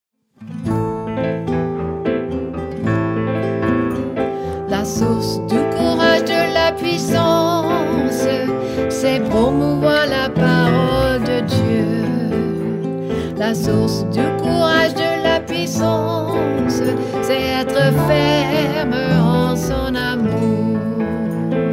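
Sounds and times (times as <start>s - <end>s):
French song: 0.8s - 21.7s.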